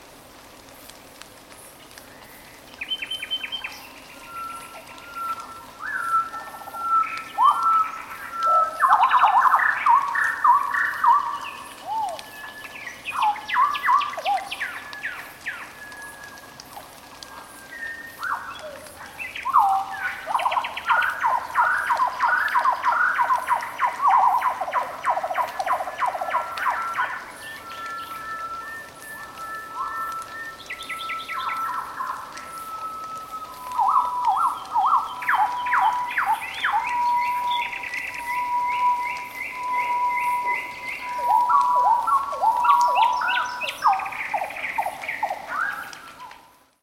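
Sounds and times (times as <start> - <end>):
night forest ambience: 0.0 - 46.8.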